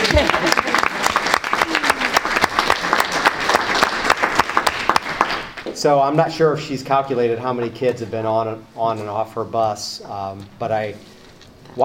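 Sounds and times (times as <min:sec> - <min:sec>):
audience applause: 0:00.0 - 0:05.7
speech: 0:05.8 - 0:11.1.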